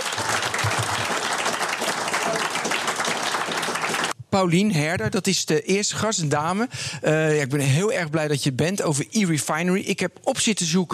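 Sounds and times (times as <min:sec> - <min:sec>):
live audience applause: 0:00.0 - 0:04.2
speech: 0:04.4 - 0:10.9.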